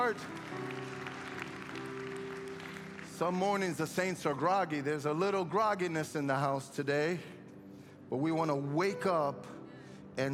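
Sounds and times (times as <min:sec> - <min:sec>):
speech: 0:00.0 - 0:00.8, 0:03.2 - 0:07.4, 0:08.1 - 0:09.6, 0:10.2 - 0:10.3
audience clapping: 0:00.0 - 0:04.5
sustained low musical tone: 0:00.0 - 0:10.3.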